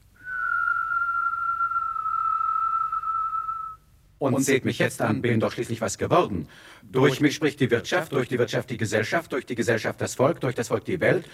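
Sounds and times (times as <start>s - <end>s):
person whistling one long sustained note: 0.2s - 3.8s
speech: 4.2s - 11.3s.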